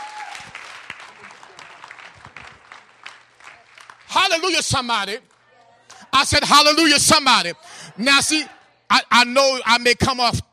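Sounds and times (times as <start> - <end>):
audience clapping hands: 0.0 - 5.6
speech: 4.3 - 5.3, 6.2 - 10.5.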